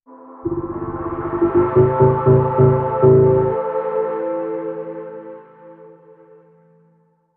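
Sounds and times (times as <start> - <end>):
pulsing aura musical sting: 0.5 - 3.6.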